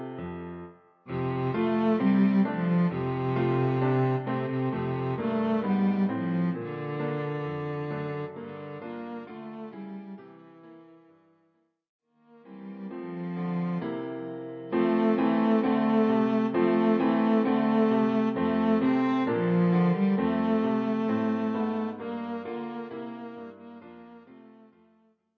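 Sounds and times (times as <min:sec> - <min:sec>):
cello: 0:01.1 - 0:11.0, 0:12.3 - 0:25.0.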